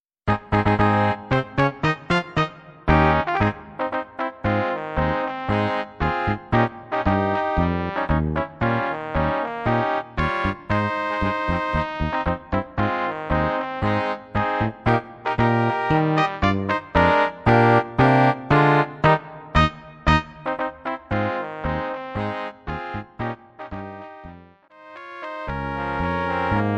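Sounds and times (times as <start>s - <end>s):
march music: 0.3s - 26.7s.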